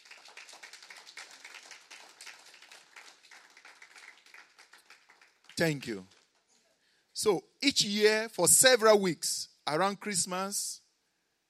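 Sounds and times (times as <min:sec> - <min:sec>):
audience applause: 0:00.0 - 0:06.2
speech: 0:05.6 - 0:06.2, 0:07.2 - 0:10.8.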